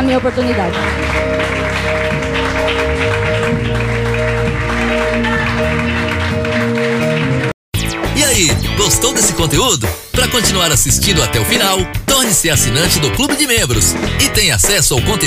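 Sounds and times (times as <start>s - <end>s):
sustained droning music: 0.0s - 7.5s
audience applauding: 0.0s - 7.6s
speech: 0.1s - 3.9s, 8.9s - 15.2s.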